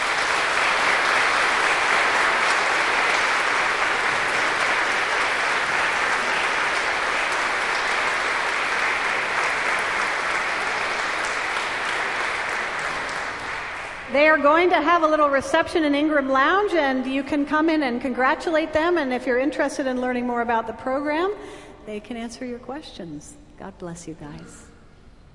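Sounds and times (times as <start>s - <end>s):
audience applause for graduates: 0.0s - 14.1s
speech: 14.4s - 24.7s.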